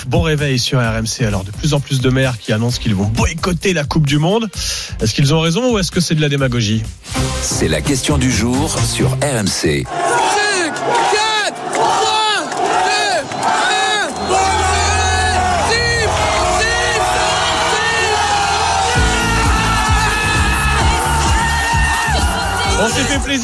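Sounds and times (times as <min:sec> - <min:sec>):
speech: 0:00.0 - 0:11.2, 0:23.0 - 0:23.4
thousands of football fans cheering at final whistle: 0:09.9 - 0:23.4.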